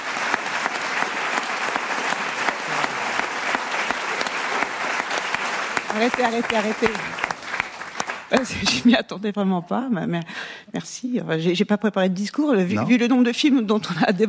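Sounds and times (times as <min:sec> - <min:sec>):
audience applause: 0:00.0 - 0:08.8
speech: 0:06.0 - 0:07.1, 0:08.3 - 0:14.2.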